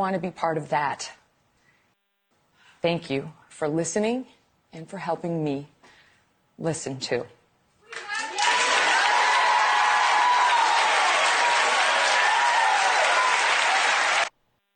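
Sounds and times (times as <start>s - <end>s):
speech: 0.0s - 1.2s, 2.8s - 5.7s, 6.6s - 7.4s
faint cheering voices: 7.9s - 14.3s
large audience applauding, standing ovation: 7.9s - 14.3s.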